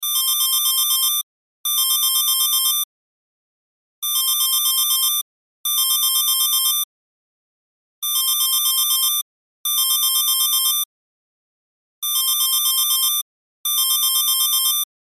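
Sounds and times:
cell phone ringtone: 0:00.0 - 0:02.9, 0:04.0 - 0:06.9, 0:08.0 - 0:10.9, 0:12.0 - 0:14.9.

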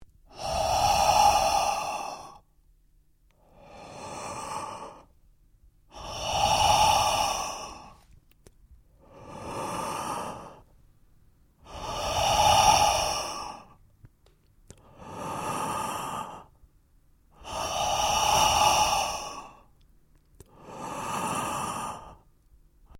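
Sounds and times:
man breathing heavily: 0:00.3 - 0:02.5, 0:03.4 - 0:05.2, 0:05.9 - 0:08.1, 0:08.9 - 0:10.7, 0:11.6 - 0:13.8, 0:14.7 - 0:16.6, 0:17.3 - 0:19.8, 0:20.4 - 0:22.3.

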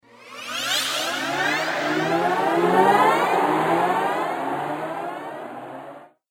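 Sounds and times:
out of body flashback whoosh: 0:00.0 - 0:04.0.

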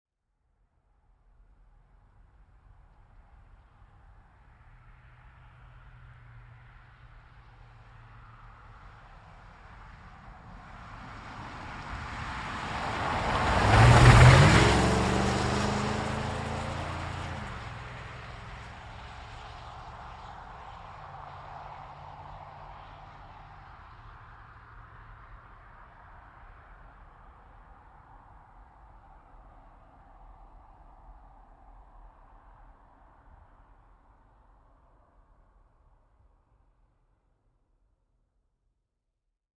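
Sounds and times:
GMC Savana truck passing by a corner fast: 0:10.9 - 0:23.6.

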